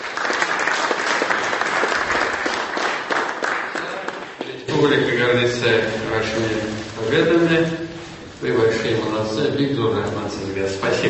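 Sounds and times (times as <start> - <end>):
applause: 0.0 - 4.7
speech: 4.8 - 7.8, 8.4 - 11.0.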